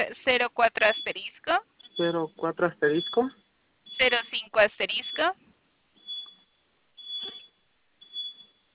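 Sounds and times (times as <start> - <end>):
speech: 0.0 - 3.4, 4.0 - 5.6
electronic chime from a device: 1.8 - 4.4, 6.0 - 8.7.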